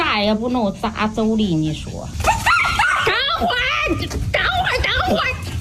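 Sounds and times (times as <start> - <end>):
speech: 0.2 - 2.4, 3.4 - 5.5
dog yipping and whimpering on a walk in a village: 2.2 - 3.2.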